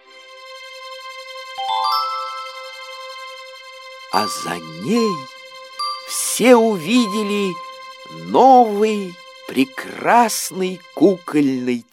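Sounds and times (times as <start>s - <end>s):
gentle chime as golden key opens small oak door: 1.6s - 3.1s, 5.8s - 7.9s
high tinkling notes: 1.6s - 3.4s, 4.2s - 9.2s
speech: 4.1s - 5.4s, 6.1s - 11.9s.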